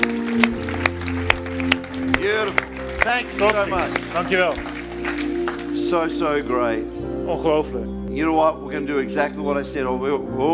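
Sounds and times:
audience applause: 0.0 - 6.2
speech: 3.2 - 4.7, 5.9 - 10.5.

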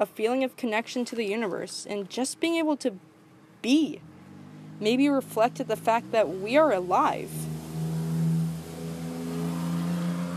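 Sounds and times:
speech: 0.0 - 4.1, 4.8 - 7.5
broadband road noise: 0.0 - 10.3
red minivan driving by: 3.0 - 10.3.

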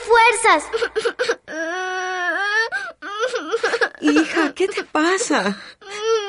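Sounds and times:
speech: 0.3 - 1.8, 4.0 - 5.8
woman crying loudly: 0.8 - 4.9.

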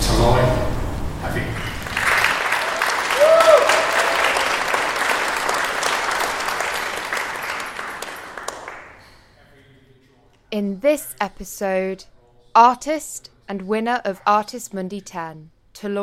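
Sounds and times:
speech: 0.2 - 0.6, 10.6 - 16.0
audience applauding the prize winner: 1.4 - 9.1.

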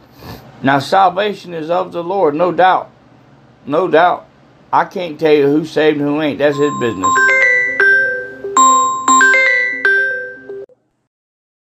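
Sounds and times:
speech: 0.6 - 3.0, 3.6 - 7.3
melodic phone ringtone: 6.5 - 10.7.

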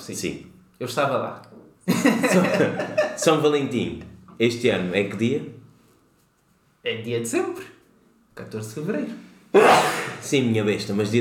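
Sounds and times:
speech: 0.0 - 5.6, 6.8 - 7.7, 8.4 - 11.1
laughter: 1.9 - 3.4
sneeze: 9.6 - 10.3.

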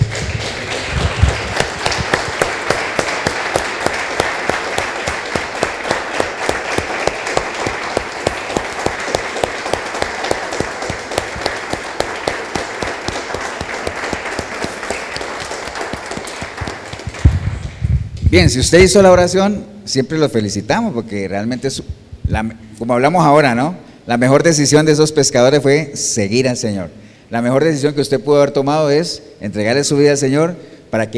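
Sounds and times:
audience applauding: 0.0 - 17.8
speech: 18.4 - 31.1.

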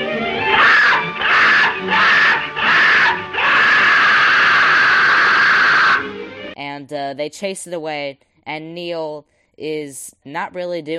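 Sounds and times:
bird screeching in a film clip: 0.5 - 6.1
speech: 6.9 - 10.9.

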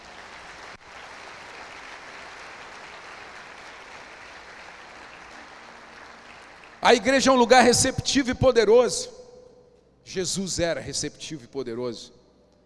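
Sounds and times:
audience applause: 0.0 - 6.8
speech: 6.8 - 9.2, 10.1 - 12.2.

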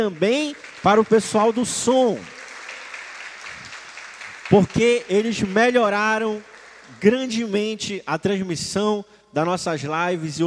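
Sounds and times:
speech: 0.0 - 2.4, 4.5 - 10.4
applause: 0.0 - 7.8.

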